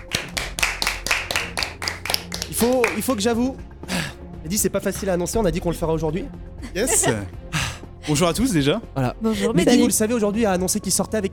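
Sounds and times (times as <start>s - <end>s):
audience applauding: 0.0s - 3.2s
speech: 2.6s - 7.4s, 8.0s - 11.3s
laughter: 6.6s - 8.3s, 9.2s - 10.0s.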